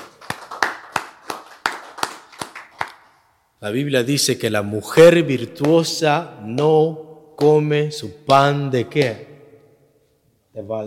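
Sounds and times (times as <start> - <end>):
audience clapping hands: 0.0 - 3.2
speech: 3.6 - 9.3, 10.6 - 10.8.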